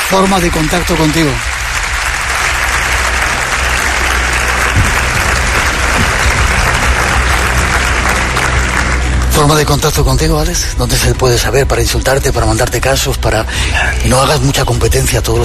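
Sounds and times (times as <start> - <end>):
audience applause: 0.0 - 10.0
speech: 0.1 - 1.5, 9.4 - 15.4.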